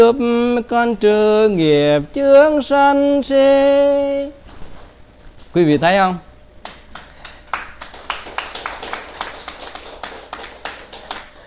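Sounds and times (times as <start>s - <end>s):
speech: 0.0s - 4.4s, 5.5s - 6.3s
weak audience applause: 6.9s - 11.4s.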